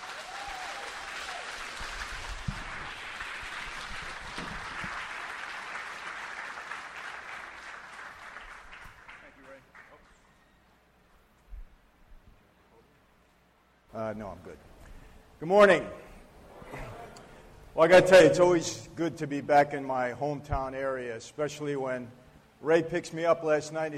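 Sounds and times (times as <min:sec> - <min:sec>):
audience applause welcoming a guest speaker: 0:00.0 - 0:10.2
speech: 0:14.1 - 0:14.7, 0:15.4 - 0:16.0, 0:17.8 - 0:23.9.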